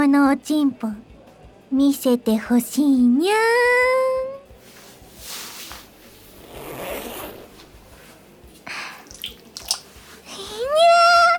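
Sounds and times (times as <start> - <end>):
speech: 0.0 - 1.1, 1.7 - 4.1
trouser zipper being undone: 6.1 - 7.7.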